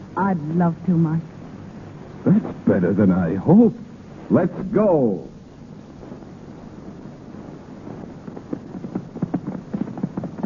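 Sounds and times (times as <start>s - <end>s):
speech: 0.2s - 1.4s, 2.2s - 5.3s
hooves clip-clopping: 8.0s - 10.4s
horses galloping: 8.0s - 10.4s.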